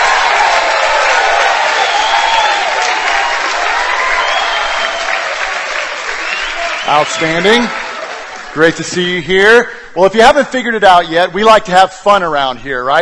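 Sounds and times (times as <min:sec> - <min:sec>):
crowd cheering and whooping: 0:00.0 - 0:08.7
audience applause welcoming new students at a campus gathering: 0:00.0 - 0:09.1
speech: 0:06.9 - 0:07.8, 0:08.5 - 0:13.0.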